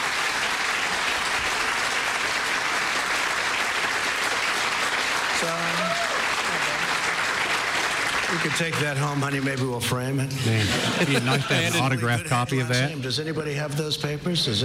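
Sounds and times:
rally crowd cheering and applauding: 0:00.0 - 0:09.8
speech: 0:08.4 - 0:14.6
laughter: 0:10.3 - 0:12.8.

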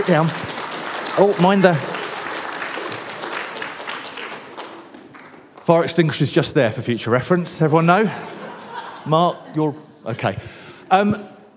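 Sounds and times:
speech: 0:00.0 - 0:00.4, 0:01.2 - 0:01.9, 0:05.7 - 0:08.4, 0:09.0 - 0:11.3
audience applause: 0:00.0 - 0:06.3
laughter: 0:07.8 - 0:10.5.

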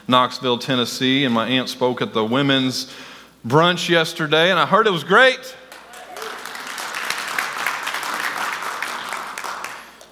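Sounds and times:
speech: 0:00.1 - 0:05.6
audience clapping: 0:05.7 - 0:10.1.

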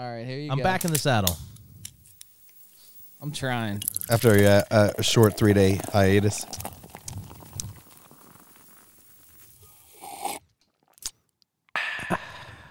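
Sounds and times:
speech: 0:00.0 - 0:01.5, 0:03.2 - 0:06.7
sharp click: 0:00.7 - 0:02.3
beer being poured into a glass: 0:02.3 - 0:11.1.

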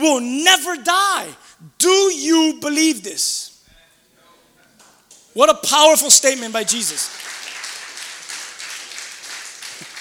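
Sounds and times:
speech: 0:00.0 - 0:03.5, 0:05.4 - 0:07.5
audience clapping: 0:06.6 - 0:10.0.

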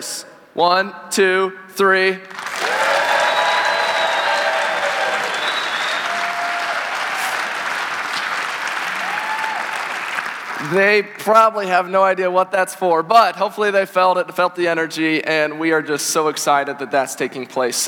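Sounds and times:
speech: 0:00.0 - 0:02.4, 0:10.6 - 0:17.8
audience cheering and clapping: 0:02.3 - 0:10.8.

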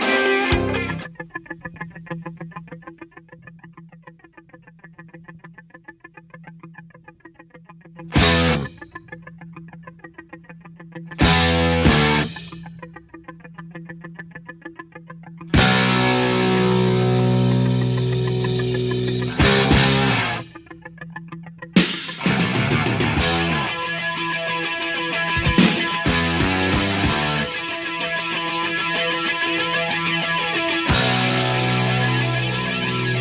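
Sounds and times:
rock full-band chord stabs: 0:00.0 - 0:01.1, 0:08.2 - 0:08.9, 0:11.2 - 0:12.7, 0:15.6 - 0:20.8, 0:21.8 - 0:33.2
distorted electric guitar playing a chugging muted rock riff: 0:00.0 - 0:33.2.

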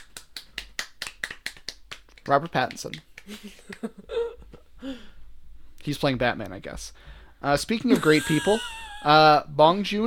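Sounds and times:
applause: 0:00.0 - 0:03.0
speech: 0:02.3 - 0:05.2, 0:05.8 - 0:10.0.

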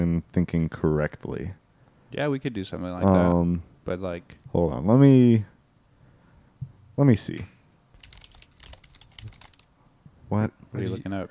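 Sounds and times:
speech: 0:00.2 - 0:05.5, 0:07.0 - 0:07.5, 0:10.3 - 0:11.2
typing on a computer keyboard: 0:08.0 - 0:09.8.

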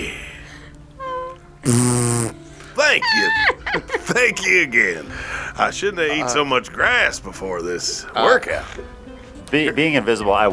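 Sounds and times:
laughter: 0:00.0 - 0:10.5
loud fart: 0:01.6 - 0:02.5
speech: 0:01.7 - 0:10.5.

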